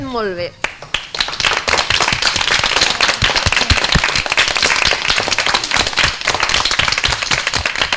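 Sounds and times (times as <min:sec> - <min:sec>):
school class applauding: 0:00.6 - 0:07.9.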